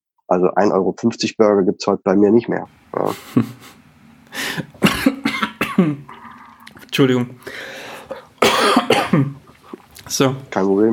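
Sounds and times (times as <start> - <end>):
speech: 0.3 - 3.8, 7.0 - 7.7, 8.6 - 9.4, 10.1 - 10.9
coughing after choking: 4.5 - 6.2, 8.1 - 9.4.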